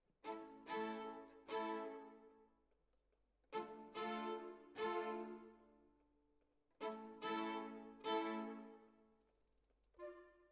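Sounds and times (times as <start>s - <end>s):
violin solo: 0.3s - 2.3s, 3.6s - 5.7s, 6.8s - 8.9s.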